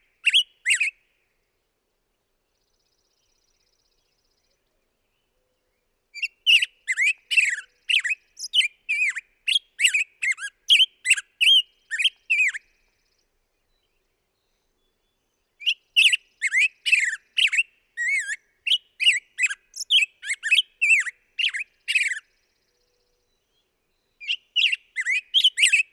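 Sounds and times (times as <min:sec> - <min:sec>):
black-headed grosbeak singing: 0:00.2 - 0:01.0, 0:06.2 - 0:12.6, 0:15.6 - 0:22.9, 0:24.2 - 0:25.9.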